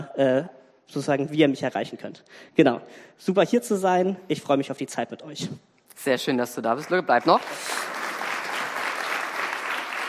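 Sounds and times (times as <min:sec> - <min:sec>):
speech: 0:00.1 - 0:08.0
applause from an audience at a gathering: 0:06.7 - 0:10.0.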